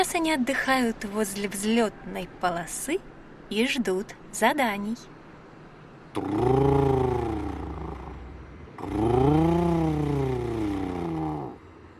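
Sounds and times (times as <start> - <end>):
speech: 0.0 - 5.1, 6.1 - 7.0
airplane engines rumbling, turbines running: 5.0 - 11.9.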